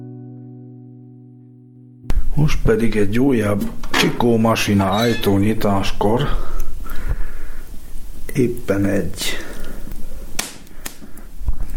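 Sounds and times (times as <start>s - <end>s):
speech: 2.4s - 6.6s, 8.4s - 9.5s
pop while lighting incense: 10.3s - 11.7s.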